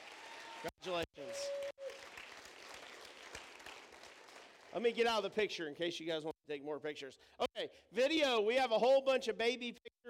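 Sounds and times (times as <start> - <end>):
audience clapping for congratulated people: 0.0 - 5.4
speech: 0.8 - 1.7, 4.7 - 10.0.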